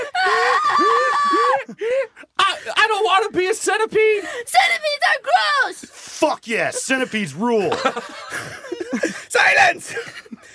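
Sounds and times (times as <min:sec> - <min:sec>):
two girls scream-crying: 0:00.0 - 0:01.9
speech: 0:03.2 - 0:10.3
laughter: 0:06.5 - 0:10.5.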